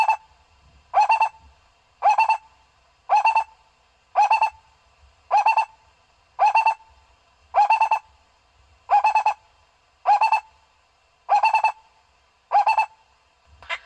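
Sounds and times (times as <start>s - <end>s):
owl hooting: 0.0s - 0.3s, 0.9s - 1.4s, 2.0s - 2.5s, 3.1s - 4.7s, 5.3s - 5.8s, 6.4s - 8.1s, 8.9s - 9.4s, 10.0s - 10.6s, 11.3s - 11.9s, 12.5s - 13.0s, 13.6s - 13.8s.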